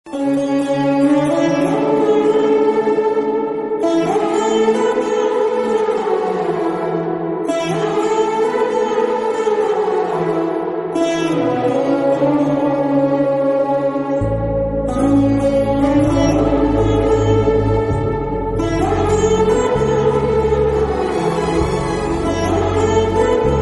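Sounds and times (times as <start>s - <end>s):
instrumental music: 0.1s - 23.6s.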